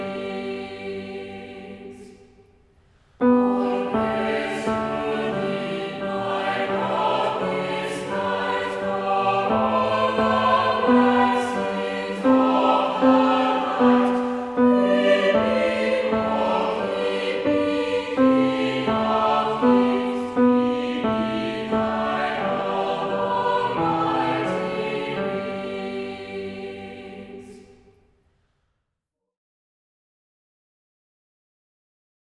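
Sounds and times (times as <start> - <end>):
tenor singing: 3.2 - 27.8.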